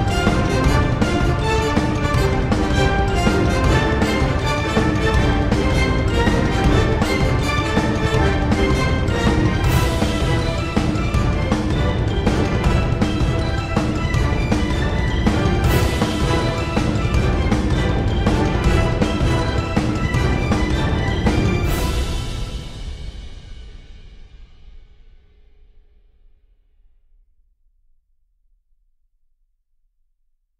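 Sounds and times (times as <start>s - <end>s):
orchestral music: 0.0s - 24.2s.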